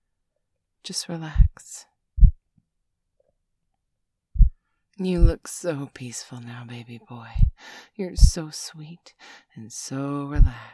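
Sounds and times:
speech: 0.8s - 1.9s, 5.0s - 10.7s
slow human heartbeat: 1.4s - 1.6s, 2.2s - 2.4s, 4.4s - 4.6s, 5.2s - 5.4s, 7.3s - 7.6s, 8.2s - 8.4s, 10.4s - 10.7s.

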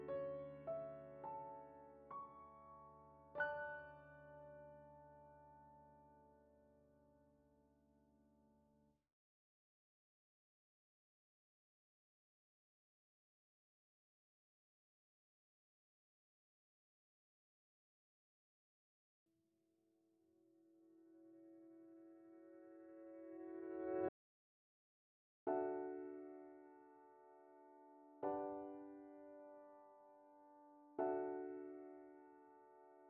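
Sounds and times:
piano: 0.0s - 8.9s, 20.5s - 24.1s, 25.5s - 33.0s.

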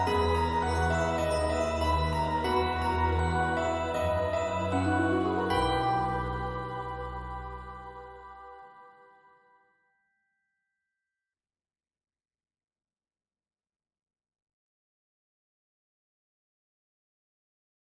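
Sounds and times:
instrumental ballad: 0.0s - 8.8s.

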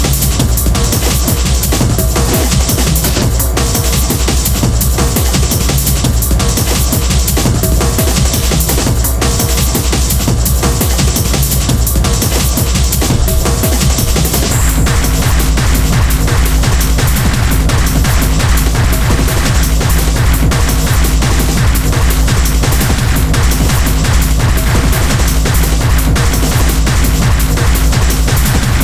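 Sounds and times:
aggressive tribal music: 0.0s - 28.8s.

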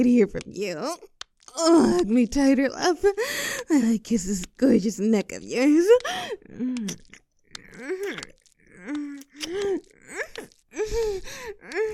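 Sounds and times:
speech: 0.0s - 7.2s, 7.8s - 11.9s
heavy breathing: 3.2s - 3.7s, 8.9s - 11.9s.

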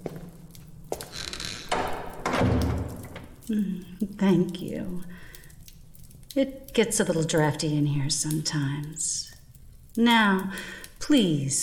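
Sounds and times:
door creaking and thudding shut: 1.0s - 3.4s
speech: 3.5s - 5.2s, 6.4s - 9.3s, 10.0s - 11.6s.

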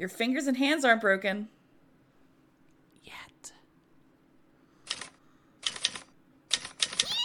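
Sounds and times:
speech: 0.0s - 1.6s
person typing while writing a script: 4.9s - 7.2s.

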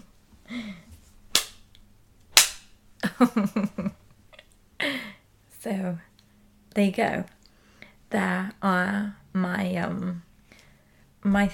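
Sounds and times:
small whip cracking: 2.4s - 2.7s
speech: 3.2s - 3.9s, 5.6s - 6.1s, 6.8s - 7.4s, 8.1s - 10.3s, 11.2s - 11.5s.

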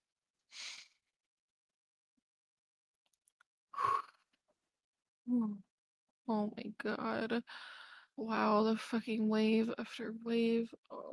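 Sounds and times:
speech: 5.3s - 5.6s, 6.3s - 11.1s
person breathing in and out: 7.5s - 8.1s.

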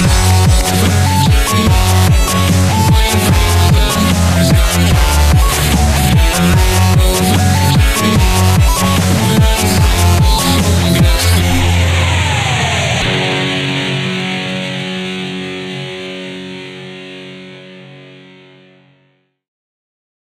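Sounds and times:
metalstep remix: 0.0s - 15.6s.

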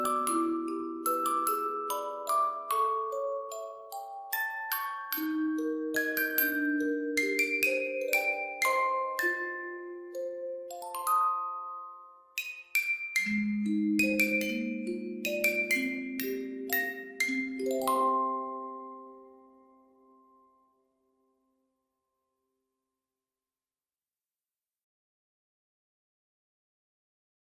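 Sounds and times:
lullaby music: 0.0s - 21.1s.

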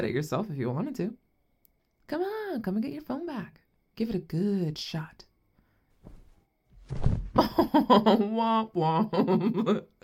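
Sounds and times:
speech: 0.0s - 1.2s, 2.1s - 5.3s, 6.9s - 10.0s
person jumping and falling to the floor: 6.0s - 7.6s.

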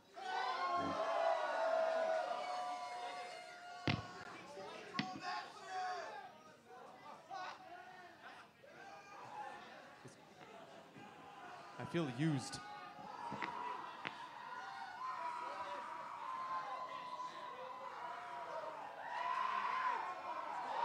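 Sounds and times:
concert crowd cheering and shouting: 0.0s - 6.1s, 11.0s - 20.8s
speech: 11.9s - 12.7s.

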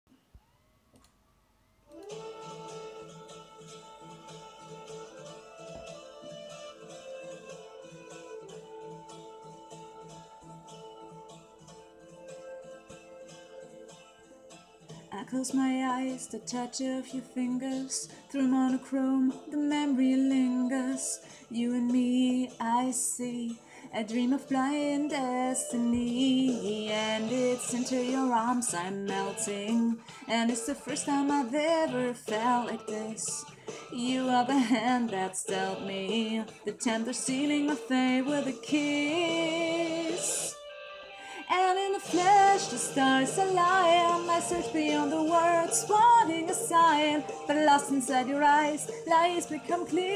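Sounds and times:
woman singing karaoke: 15.1s - 40.6s, 41.2s - 50.1s.

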